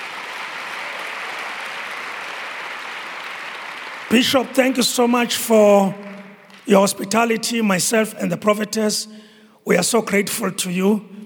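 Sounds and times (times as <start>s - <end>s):
audience clapping hands: 0.0s - 7.0s
speech: 4.1s - 6.1s, 6.7s - 11.2s.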